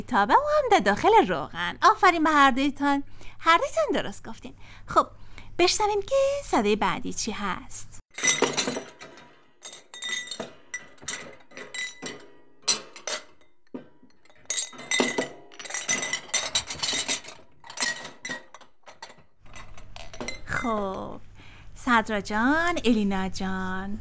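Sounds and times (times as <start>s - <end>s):
speech: 0.0s - 8.8s, 21.9s - 23.9s
dishes and glasses clinking: 8.1s - 21.0s.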